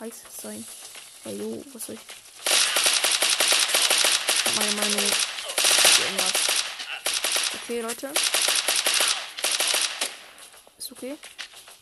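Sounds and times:
speech: 0:00.1 - 0:02.2, 0:04.5 - 0:05.3, 0:06.0 - 0:06.5, 0:07.6 - 0:08.6, 0:11.0 - 0:11.4
video game gun firing three-shot burst: 0:02.3 - 0:10.6.

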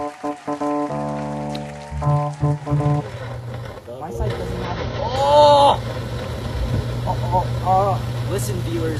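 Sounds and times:
hot tub jets bubbling water: 0:00.1 - 0:08.9
speech: 0:08.4 - 0:08.9.

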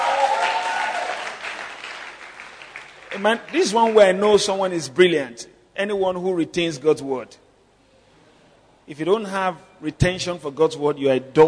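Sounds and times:
audience clapping: 0:00.0 - 0:04.3
speech: 0:03.2 - 0:07.4, 0:08.9 - 0:11.4.

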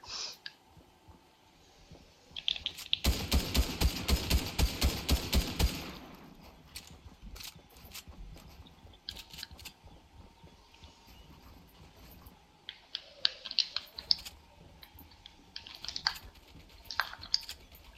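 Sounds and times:
rapid gunfire in the video game Fortnite: 0:03.0 - 0:07.5.

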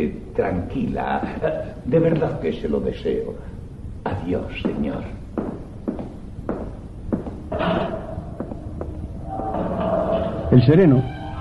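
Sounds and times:
speech: 0:00.0 - 0:05.2, 0:10.6 - 0:11.2
footsteps: 0:04.4 - 0:09.9.

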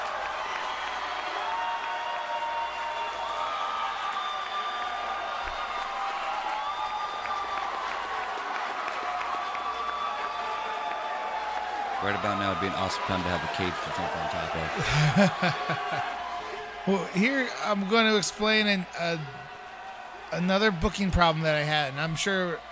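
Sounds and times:
crowd cheering wildly: 0:00.0 - 0:22.7
speech: 0:12.0 - 0:16.2, 0:16.8 - 0:19.5, 0:20.3 - 0:22.7
laughter: 0:12.1 - 0:16.3.

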